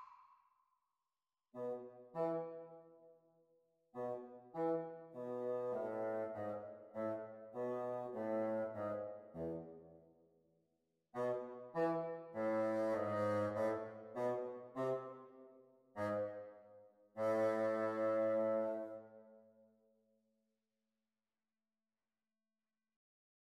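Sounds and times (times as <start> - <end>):
bassoon duet: 1.6 - 2.7, 4.0 - 9.7, 11.2 - 15.3, 16.0 - 16.5, 17.2 - 19.0.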